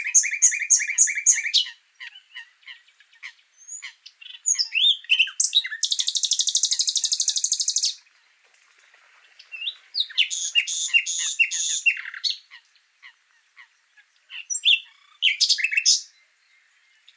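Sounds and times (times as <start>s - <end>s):
common nightingale song: 0.0s - 8.4s, 9.2s - 17.1s.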